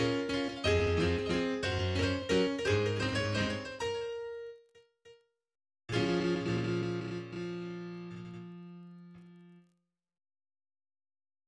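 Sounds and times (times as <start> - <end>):
relaxing piano music: 0.0 - 4.6, 5.9 - 9.4.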